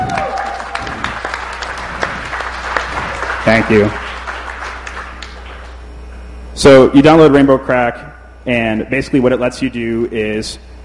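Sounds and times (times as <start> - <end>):
audience applause: 0.0 - 5.8
speech: 3.4 - 4.0, 6.6 - 10.7.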